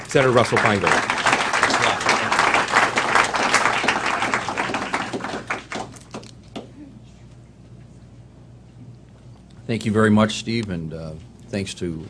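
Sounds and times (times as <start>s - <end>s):
audience applause at a New America Foundation event welcoming Senator Russ Feingold: 0.0s - 6.2s
speech: 0.1s - 1.2s, 9.7s - 12.0s.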